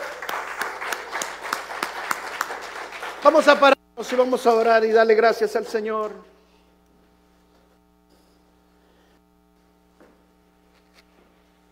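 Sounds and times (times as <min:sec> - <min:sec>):
audience applause: 0:00.0 - 0:03.8
speech: 0:03.2 - 0:06.4.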